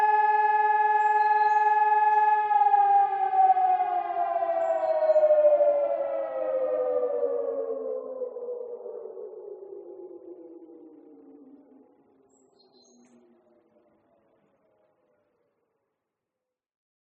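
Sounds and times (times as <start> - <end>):
air raid siren: 0.0 - 12.0.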